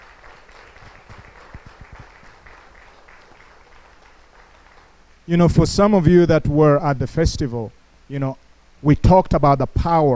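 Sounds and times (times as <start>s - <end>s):
audience applauding: 0.0s - 5.0s
speech: 5.3s - 10.1s.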